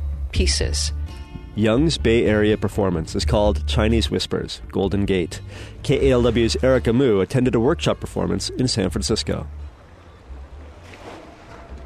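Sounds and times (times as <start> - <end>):
speech: 0.4 - 9.7
low rumble: 4.8 - 11.8
shallow water lapping beside paddle steamboat Eureka at Hyde Street Pier: 5.1 - 11.8.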